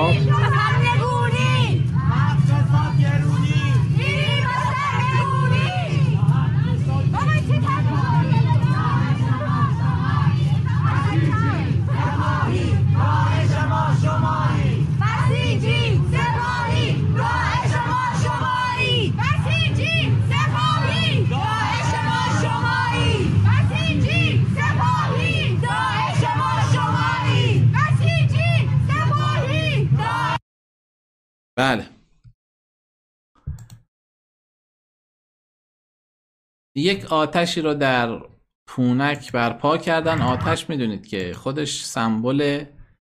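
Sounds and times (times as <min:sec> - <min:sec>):
large street crowd of protesters chanting a slogan: 0:00.0 - 0:30.4, 0:40.0 - 0:40.6
speech: 0:36.8 - 0:42.8.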